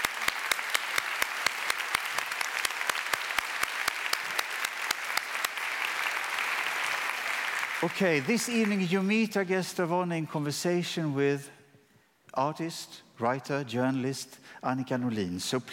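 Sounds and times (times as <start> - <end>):
audience applause: 0.0 - 9.0
speech: 7.8 - 11.6, 12.4 - 15.7.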